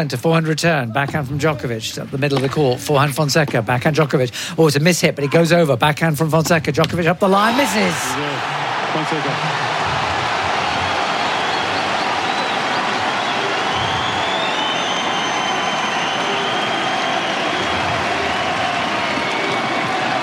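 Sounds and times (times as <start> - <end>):
speech: 0.0 - 9.7
tennis crowd cheering and applause after a point: 7.3 - 20.2
high whistles: 10.6 - 20.2.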